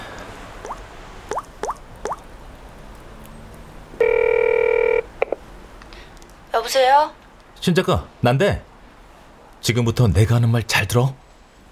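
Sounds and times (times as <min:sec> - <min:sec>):
telephone ringing with electronic buzz: 0:04.0 - 0:05.1
speech: 0:06.6 - 0:08.7, 0:09.6 - 0:11.7.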